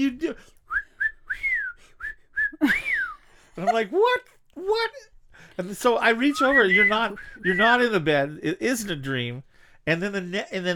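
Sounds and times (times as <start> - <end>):
speech: 0.0 - 0.6, 3.6 - 10.7
person whistling imitation bird calls: 0.7 - 3.2, 6.3 - 7.7.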